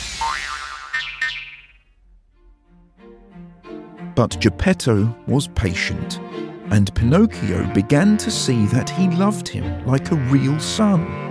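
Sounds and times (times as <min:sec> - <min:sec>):
springy cartoon boing as thrown hammer hits: 0:00.1 - 0:01.8
speech: 0:04.2 - 0:11.2.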